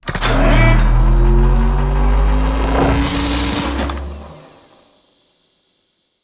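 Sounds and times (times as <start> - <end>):
machine starting up: 0.0 - 4.8.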